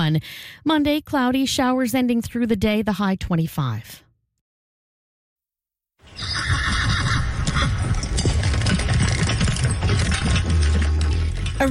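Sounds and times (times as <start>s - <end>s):
speech: 0.0s - 4.0s, 11.6s - 11.7s
horse neighing: 6.1s - 8.4s
horse hooves clip-clopping: 6.2s - 11.7s.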